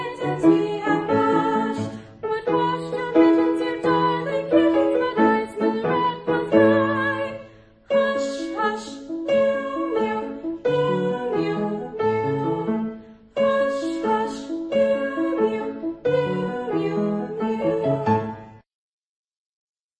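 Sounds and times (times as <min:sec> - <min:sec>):
nursery rhyme music: 0:00.0 - 0:18.6.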